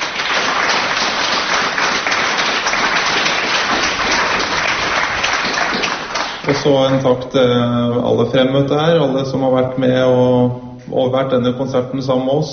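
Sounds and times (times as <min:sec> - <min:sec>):
audience applause after a concert: 0:00.0 - 0:06.8
speech: 0:06.6 - 0:12.5.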